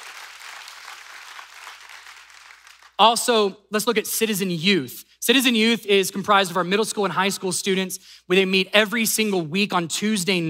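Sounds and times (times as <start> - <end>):
crowd applause for a children's ministry team at a church event: 0.0 - 3.0
speech: 3.0 - 10.4.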